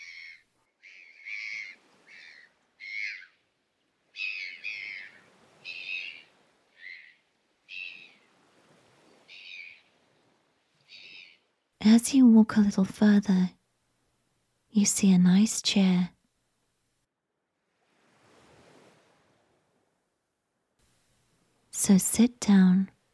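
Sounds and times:
seabirds calling overhead by the shore: 0.0s - 3.4s, 4.1s - 8.3s, 9.0s - 10.0s, 10.8s - 11.5s
speech: 11.9s - 13.6s, 14.8s - 16.2s, 21.9s - 23.0s.

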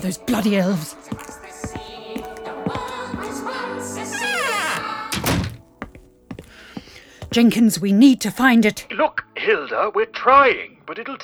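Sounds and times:
speech: 0.0s - 1.3s, 7.4s - 11.2s
door being closed: 1.1s - 7.4s.

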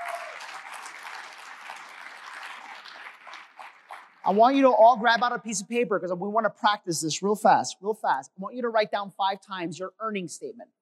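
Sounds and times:
applause: 0.0s - 4.6s
speech: 4.3s - 10.8s.

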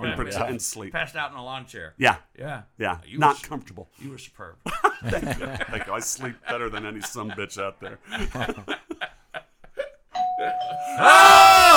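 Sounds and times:
speech: 0.2s - 9.1s, 11.0s - 11.7s
laughter: 4.7s - 11.0s
doorbell ringing: 10.2s - 11.0s.

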